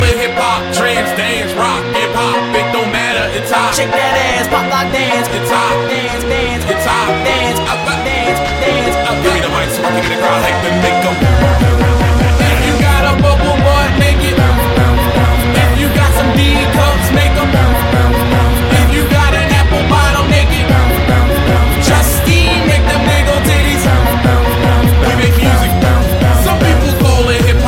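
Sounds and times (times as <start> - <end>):
hip hop remix: 0.0 - 27.6.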